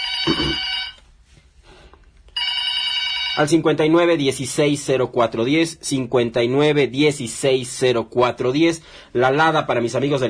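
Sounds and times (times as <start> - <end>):
telephone ringing with electronic trill: 0.0 - 1.1, 2.4 - 3.8
speech: 0.2 - 0.8, 3.4 - 10.2.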